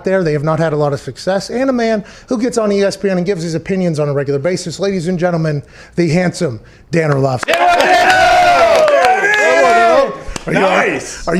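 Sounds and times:
speech: 0:00.0 - 0:08.2, 0:10.4 - 0:11.3
hands clapping: 0:07.1 - 0:10.7
crowd cheering and yelling: 0:07.5 - 0:11.1.

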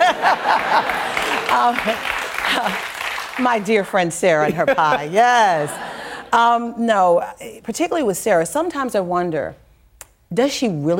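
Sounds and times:
laughter: 0:00.0 - 0:02.9, 0:04.4 - 0:06.4
live audience applause: 0:00.0 - 0:03.7
speech: 0:01.6 - 0:09.6, 0:10.3 - 0:10.9.

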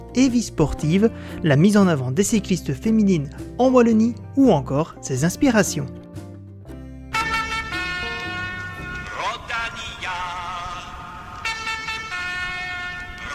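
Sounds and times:
speech: 0:00.2 - 0:06.0
cycling race lead car musical horn playing a multi-note tune: 0:07.1 - 0:09.4, 0:11.4 - 0:13.3.

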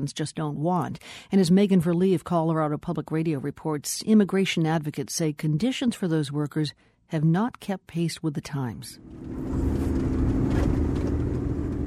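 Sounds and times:
speech: 0:00.0 - 0:09.8
truck driving over rocky dirt roads in the mountains of western Colorado: 0:09.1 - 0:11.8.

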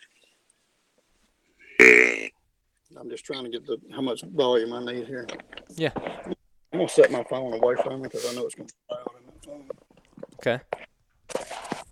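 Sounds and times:
deer grunt call being blown: 0:01.8 - 0:02.3
speech: 0:02.9 - 0:08.9, 0:10.4 - 0:10.8.

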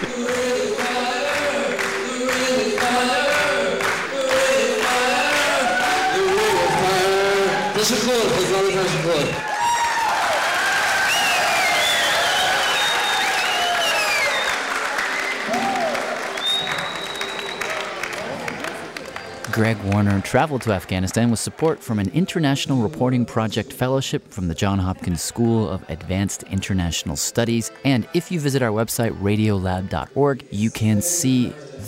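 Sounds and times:
large concert crowd cheering and applauding: 0:00.0 - 0:22.2
crowd whistles: 0:11.0 - 0:17.9
speech: 0:19.6 - 0:31.8.

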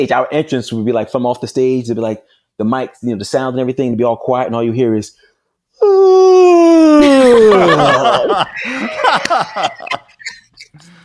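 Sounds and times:
speech: 0:00.0 - 0:10.2
person yawning: 0:05.8 - 0:08.1
laughter: 0:07.0 - 0:10.9.

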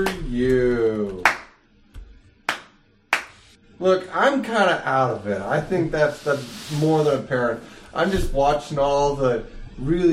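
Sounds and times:
speech: 0:00.0 - 0:01.2, 0:03.8 - 0:10.1
slow hand claps: 0:01.1 - 0:01.6, 0:02.5 - 0:03.6.

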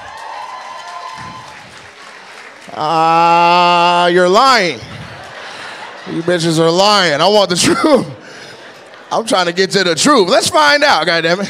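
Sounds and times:
audience clapping: 0:00.0 - 0:06.2
speech: 0:02.7 - 0:04.9, 0:06.1 - 0:08.2, 0:09.1 - 0:11.4
laughter: 0:04.1 - 0:11.4.

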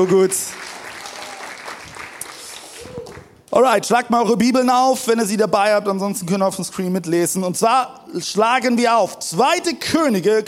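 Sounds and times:
speech: 0:00.0 - 0:00.8, 0:03.6 - 0:10.4
crowd clapping: 0:00.0 - 0:03.5.

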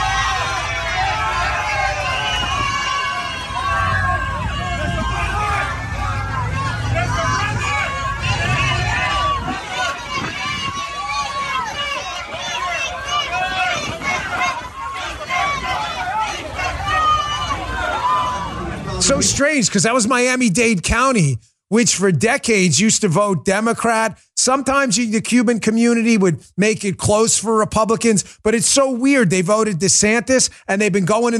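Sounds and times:
crowd cheering wildly in restaurant: 0:00.0 - 0:21.1
speech: 0:19.2 - 0:31.3.

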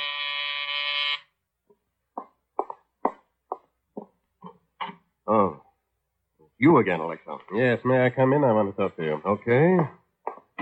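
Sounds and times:
door buzzer: 0:00.0 - 0:01.4
irregular thumps: 0:01.7 - 0:05.1
speech: 0:05.3 - 0:05.6, 0:06.6 - 0:10.0.

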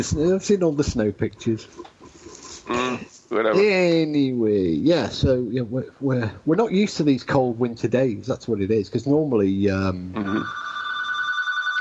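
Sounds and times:
speech: 0:00.0 - 0:01.9, 0:02.7 - 0:10.7
telephone ringing with an incoming call: 0:10.2 - 0:11.7.

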